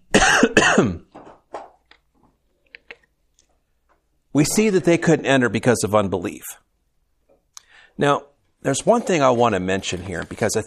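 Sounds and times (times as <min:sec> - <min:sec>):
forceful coughing after something went down the wrong way: 0:00.1 - 0:01.1
speech: 0:00.8 - 0:01.0, 0:04.4 - 0:06.7, 0:08.0 - 0:10.6.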